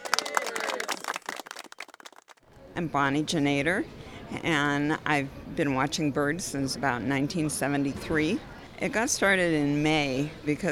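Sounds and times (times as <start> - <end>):
bird fans at Presque Isle scattered clapping: 0.0 - 2.4
speech: 2.8 - 10.7.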